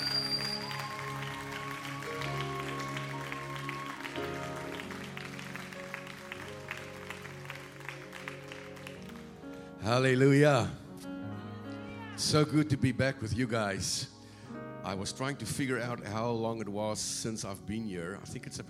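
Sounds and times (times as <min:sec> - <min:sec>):
church audience applauding as a pastor comes up to preach: 0:00.0 - 0:09.7
speech: 0:09.8 - 0:10.8, 0:12.2 - 0:14.2, 0:14.8 - 0:18.6.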